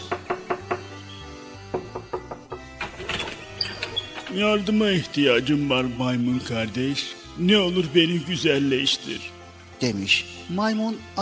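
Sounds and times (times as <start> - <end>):
knocking on a door: 0.0 - 1.0, 1.6 - 3.2
speech: 4.3 - 11.2.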